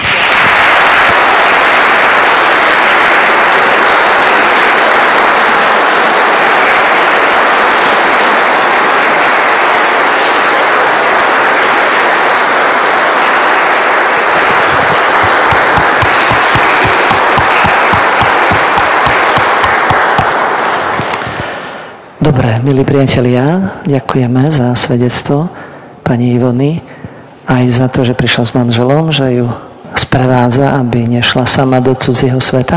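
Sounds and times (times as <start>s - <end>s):
big crowd applauding: 0.0s - 22.0s
speech: 22.6s - 26.9s, 27.5s - 32.7s.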